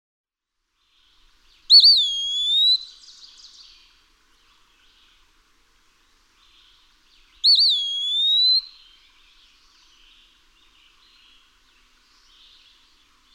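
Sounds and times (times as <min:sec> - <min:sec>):
Eastern wood-pewee whistled pee-a-wee call: 0:01.7 - 0:03.6, 0:07.4 - 0:09.0.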